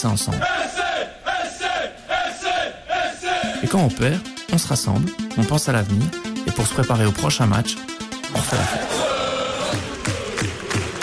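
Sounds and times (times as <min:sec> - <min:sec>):
speech: 0:00.0 - 0:00.8, 0:03.7 - 0:09.0
football fans shouting together: 0:00.4 - 0:03.5, 0:08.5 - 0:10.4.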